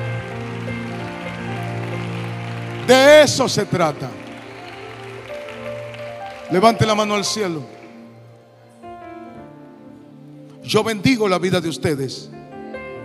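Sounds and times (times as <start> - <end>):
loud audience applause: 0.0 - 8.0
speech: 2.9 - 4.2, 6.5 - 7.8, 10.7 - 12.4.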